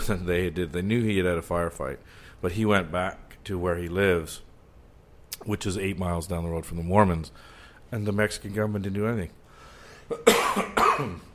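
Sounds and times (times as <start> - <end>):
speech: 0.1 - 4.5, 5.3 - 9.4, 10.1 - 11.3
coughing: 10.1 - 11.3
throat clearing: 10.1 - 11.3.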